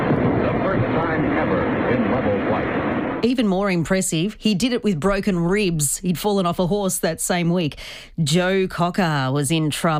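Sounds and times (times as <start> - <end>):
X-1 rocket plane engine roaring through the sound barrier: 0.0 - 3.2
speech: 1.1 - 9.9.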